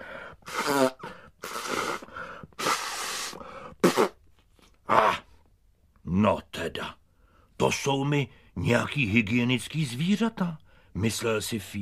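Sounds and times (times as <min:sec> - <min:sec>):
loud nose blowing into a handkerchief: 0:00.4 - 0:04.4
speech: 0:00.7 - 0:00.9, 0:07.6 - 0:11.8.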